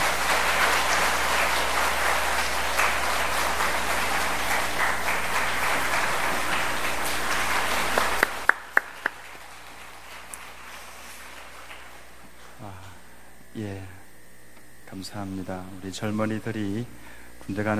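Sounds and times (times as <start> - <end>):
audience applause: 0.0 - 13.0
speech: 15.9 - 17.7.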